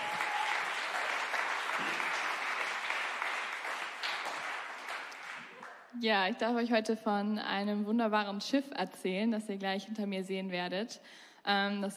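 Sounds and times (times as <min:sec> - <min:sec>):
audience applause: 0:00.0 - 0:05.8
speech: 0:06.0 - 0:11.9.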